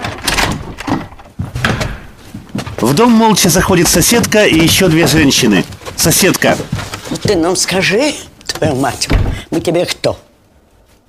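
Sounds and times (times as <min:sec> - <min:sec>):
house door opening with knocks, scrapes and rattles: 0:00.0 - 0:02.2
speech: 0:02.8 - 0:10.3.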